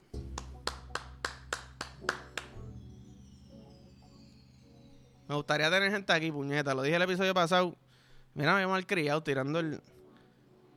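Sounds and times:
clapping: 0.2 - 2.7
speech: 5.3 - 7.8, 8.4 - 10.0.

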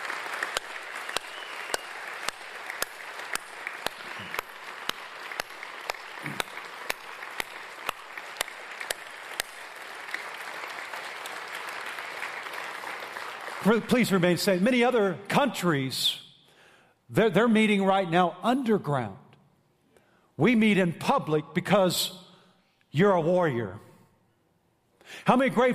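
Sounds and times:
audience applause: 0.0 - 14.2
speech: 13.6 - 16.2, 17.1 - 19.2, 20.4 - 22.2, 22.9 - 23.9, 25.1 - 25.7.

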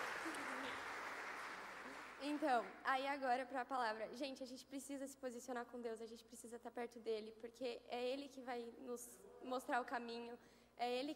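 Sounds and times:
crowd clapping: 0.0 - 2.8
speech: 2.2 - 11.1.

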